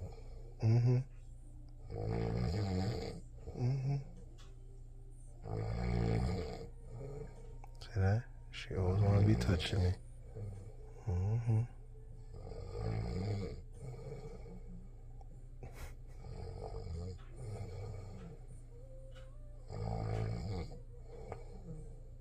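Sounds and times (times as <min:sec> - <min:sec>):
person snoring: 0:00.0 - 0:01.2, 0:01.8 - 0:04.2, 0:05.4 - 0:08.2, 0:08.8 - 0:14.8, 0:15.6 - 0:22.1
speech: 0:00.6 - 0:01.1, 0:01.9 - 0:02.3, 0:09.4 - 0:10.1.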